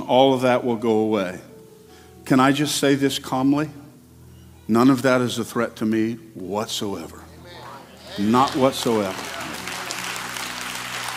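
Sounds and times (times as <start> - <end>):
speech: 0.1 - 1.5, 2.3 - 3.8, 4.7 - 7.2, 8.2 - 9.4
audience clapping: 8.1 - 11.1.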